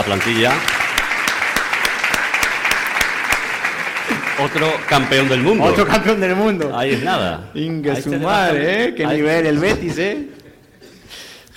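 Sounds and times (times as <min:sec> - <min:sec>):
speech: 0:00.0 - 0:00.8, 0:04.4 - 0:10.4
crowd applauding: 0:00.0 - 0:06.3.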